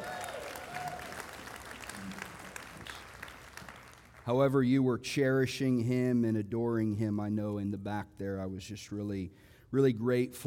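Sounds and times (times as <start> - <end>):
whistles and cheers: 0.0 - 1.8
audience applause: 0.0 - 4.3
speech: 4.3 - 10.4.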